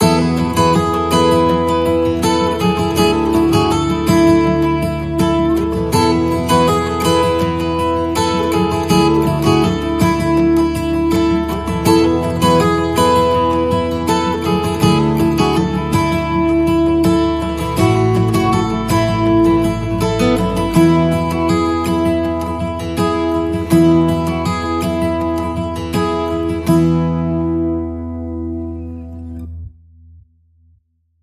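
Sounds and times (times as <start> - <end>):
positive forward music without drums: 0.0 - 29.6.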